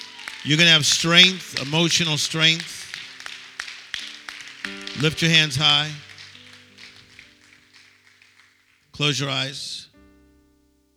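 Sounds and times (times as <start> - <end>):
audience clapping: 0.0 - 9.4
speech: 0.4 - 2.8, 5.0 - 6.1, 9.0 - 9.8.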